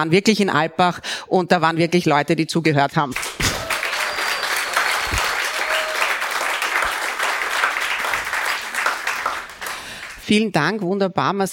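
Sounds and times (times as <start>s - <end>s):
speech: 0.0s - 3.4s, 10.3s - 11.5s
audience applause: 3.2s - 10.2s.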